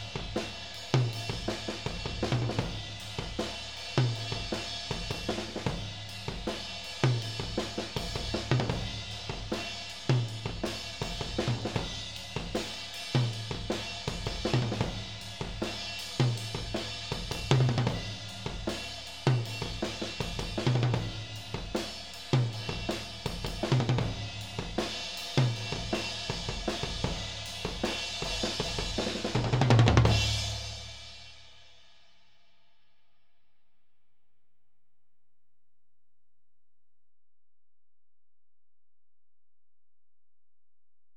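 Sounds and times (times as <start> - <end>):
tom drums: 0.0 - 31.3.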